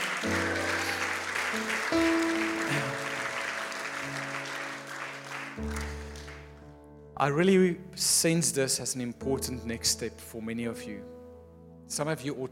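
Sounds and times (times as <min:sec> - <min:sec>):
audience cheering and applauding: 0:00.0 - 0:06.7
speech: 0:07.2 - 0:11.2, 0:11.9 - 0:12.5.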